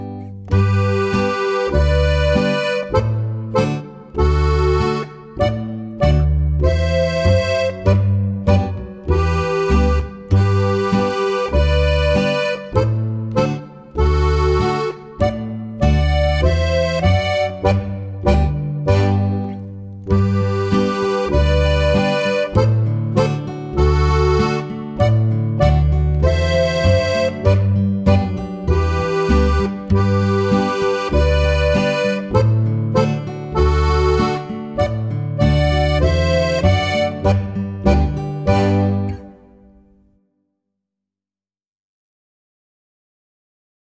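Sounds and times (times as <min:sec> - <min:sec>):
polka on three-row button accordion: 0:00.5 - 0:39.8.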